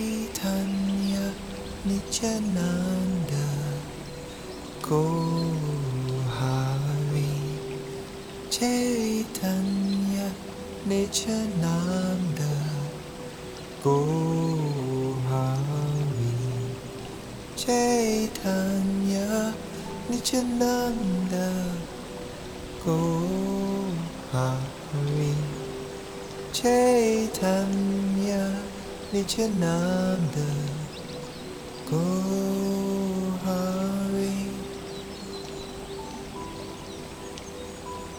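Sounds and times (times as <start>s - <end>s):
forest ambience: 0.0s - 38.1s.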